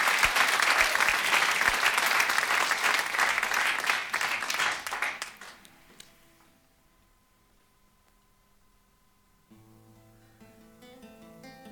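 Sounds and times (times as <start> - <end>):
audience applause: 0.0 - 5.7.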